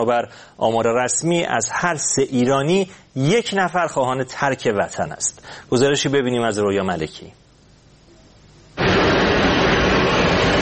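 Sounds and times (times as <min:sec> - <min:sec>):
speech: 0:00.0 - 0:07.4
jet airplane taking off: 0:08.8 - 0:10.6.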